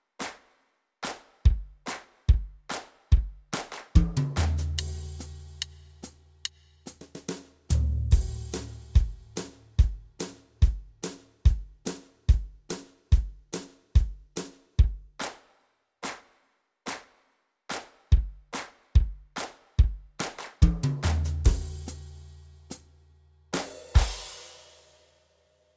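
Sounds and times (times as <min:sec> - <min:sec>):
music beat: 0:01.0 - 0:12.8, 0:18.2 - 0:22.0.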